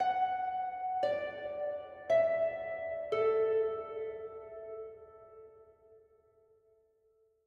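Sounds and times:
high harp: 0:00.0 - 0:05.6.

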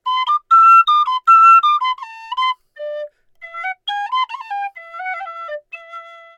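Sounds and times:
flute melody: 0:00.0 - 0:06.3.

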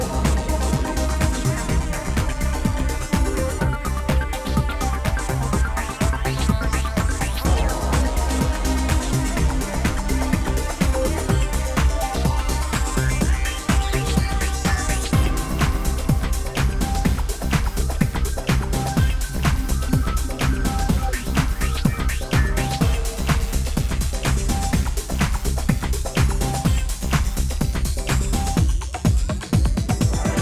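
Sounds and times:
fire music: 0:00.0 - 0:30.4.

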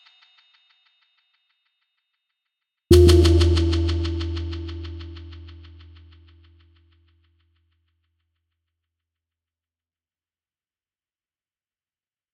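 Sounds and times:
percussion: 0:02.9 - 0:06.2.

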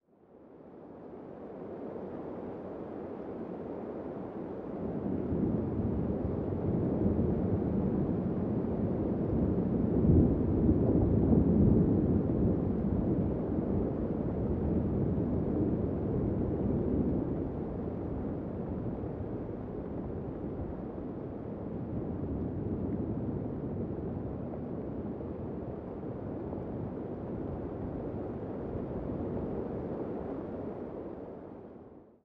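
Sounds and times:
rain nearby: 0:01.1 - 0:31.3
thunder: 0:05.0 - 0:14.1.

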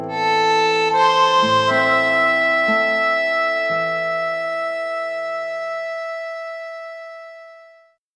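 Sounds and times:
western-style game over jingle: 0:00.1 - 0:06.8.

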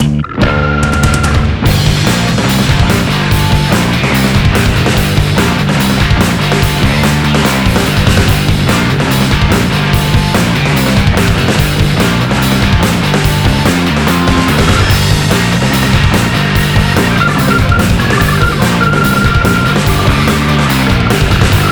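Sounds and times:
battle bonus background game music: 0:00.4 - 0:21.7.

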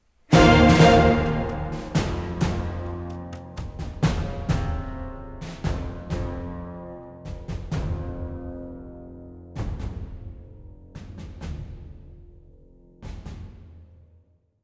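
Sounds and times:
battle music: 0:00.3 - 0:06.6.

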